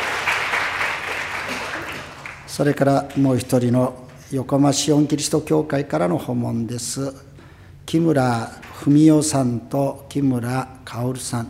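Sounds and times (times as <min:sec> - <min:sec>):
church congregation applause welcoming visitors: 0:00.0 - 0:03.4
speech: 0:02.6 - 0:07.3, 0:07.9 - 0:11.4.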